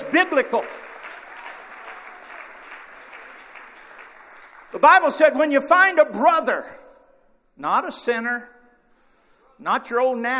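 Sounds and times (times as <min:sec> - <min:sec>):
crowd applauding: 0:00.0 - 0:05.4
speech: 0:00.1 - 0:00.8, 0:04.8 - 0:06.8, 0:07.6 - 0:08.5, 0:09.6 - 0:10.3.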